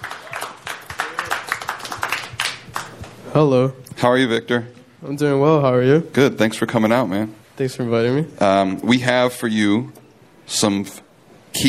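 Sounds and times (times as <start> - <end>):
audience applause welcoming a guest at a live show: 0.0 - 3.2
speech: 3.4 - 11.0.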